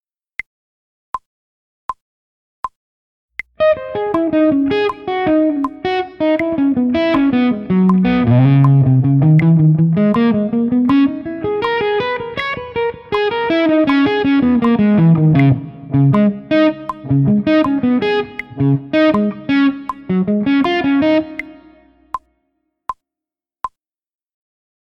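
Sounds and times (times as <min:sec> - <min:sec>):
guitar ritornello at 80 bpm: 0:03.6 - 0:21.9.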